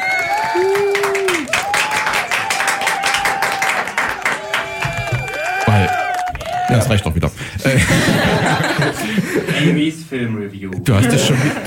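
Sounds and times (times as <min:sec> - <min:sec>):
canned applause sound effect from button: 0:00.0 - 0:07.1
cheering voices: 0:00.0 - 0:07.1
speech: 0:06.7 - 0:11.6
laughter: 0:07.6 - 0:10.0, 0:10.9 - 0:11.6.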